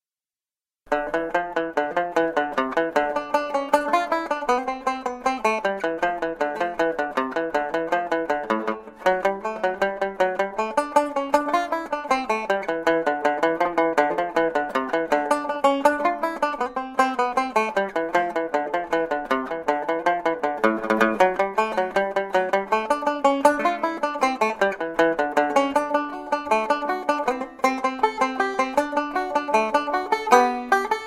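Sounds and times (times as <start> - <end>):
banjo playing a folk tune at medium tempo: 0.9 - 31.0.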